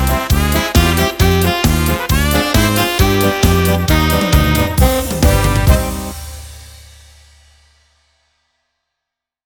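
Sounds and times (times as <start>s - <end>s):
music beat: 0.0s - 7.3s.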